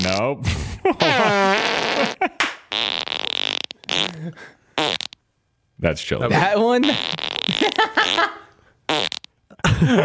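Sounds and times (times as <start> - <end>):
speech: 0.0 - 1.7, 5.8 - 7.8, 9.8 - 10.0
farts: 1.0 - 4.2, 4.8 - 5.2, 6.9 - 8.3, 8.9 - 9.3.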